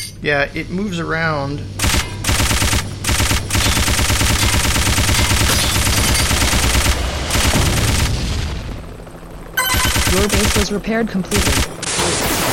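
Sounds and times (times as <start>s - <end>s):
speech: 0.2s - 1.8s, 10.1s - 11.7s
video game machine-gun fire: 1.8s - 8.6s, 9.6s - 12.5s.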